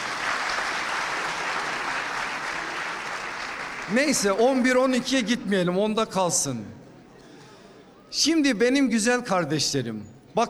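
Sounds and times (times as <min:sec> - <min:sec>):
audience applause: 0:00.0 - 0:04.7
speech: 0:03.9 - 0:06.8, 0:08.1 - 0:10.4.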